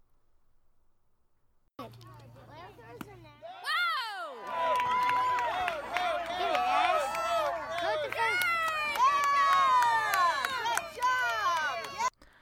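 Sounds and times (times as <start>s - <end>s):
small crowd cheering and yelling as child hits baseball: 3.4s - 12.1s.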